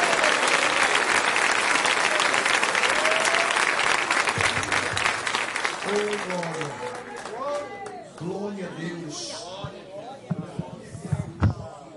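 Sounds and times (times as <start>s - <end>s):
audience applause: 0.0s - 8.0s
cheers: 0.0s - 8.2s
faint voices: 9.1s - 11.9s.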